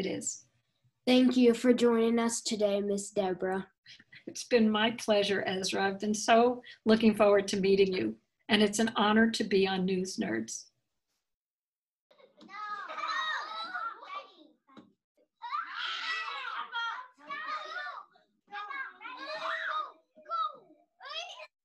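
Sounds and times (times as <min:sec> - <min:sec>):
speech: 0:00.0 - 0:10.7
children's class playing volley balloon: 0:12.1 - 0:21.5.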